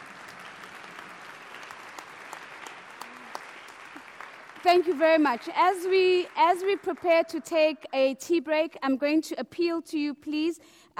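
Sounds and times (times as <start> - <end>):
sustained audience applause: 0.0 - 7.3
speech: 4.6 - 10.9.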